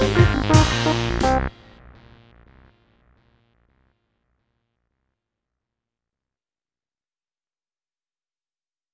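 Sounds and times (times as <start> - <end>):
funk jam: 0.0 - 1.7.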